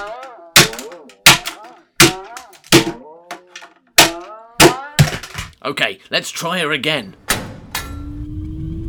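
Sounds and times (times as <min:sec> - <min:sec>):
hammer hitting a robot: 0:00.0 - 0:05.5
speech: 0:05.6 - 0:07.2.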